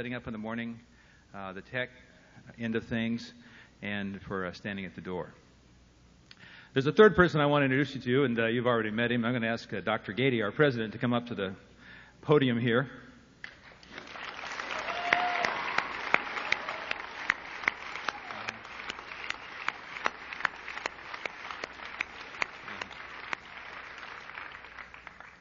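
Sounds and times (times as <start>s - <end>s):
speech: 0.0s - 5.4s, 6.7s - 13.0s
crowd applause in a large room: 13.6s - 25.3s.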